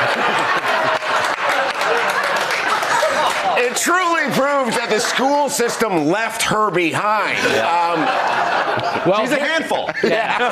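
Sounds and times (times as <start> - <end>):
audience clapping: 0.0 - 5.2
crowd cheering: 0.0 - 10.4
laughter: 0.0 - 10.4
speech: 3.7 - 10.4.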